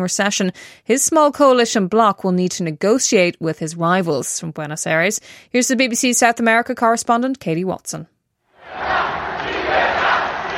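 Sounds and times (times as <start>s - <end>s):
speech: 0.0s - 8.2s
crowd cheering and chanting at Javier Milei's swearing-in as Argentina's president: 8.6s - 10.5s.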